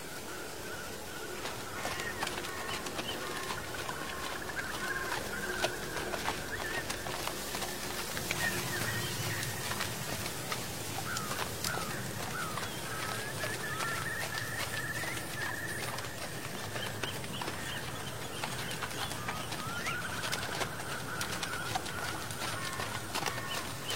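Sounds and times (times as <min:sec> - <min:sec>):
birds calling: 0:00.2 - 0:23.9
horse hooves clopping along an old road: 0:00.2 - 0:23.9
dry autumn leaves rustling: 0:01.5 - 0:15.1.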